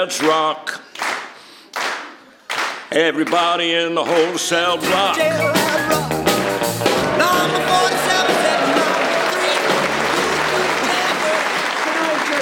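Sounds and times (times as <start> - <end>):
speech: 0.0 - 0.9, 2.9 - 6.0
audience slow hand clapping: 0.0 - 12.4
crowd voices and shouts: 4.6 - 12.4.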